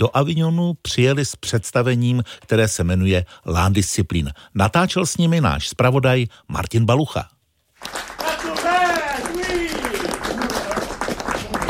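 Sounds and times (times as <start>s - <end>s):
speech: 0.0s - 8.2s
theatre audience applause: 7.8s - 11.6s
people shouting bravo: 8.2s - 10.8s.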